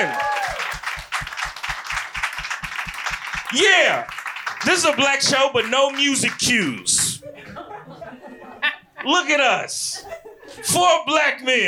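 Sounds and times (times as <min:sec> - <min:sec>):
audience applause for a comedian in the basement of Union Hall: 0:00.0 - 0:07.2
speech: 0:03.5 - 0:07.2, 0:09.0 - 0:11.6
laughter: 0:06.9 - 0:09.2, 0:09.8 - 0:10.8.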